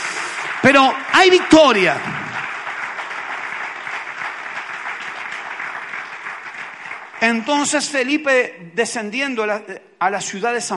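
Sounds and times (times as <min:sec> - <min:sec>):
audience applause: 0:00.0 - 0:08.0
speech: 0:00.6 - 0:02.2, 0:07.2 - 0:10.7.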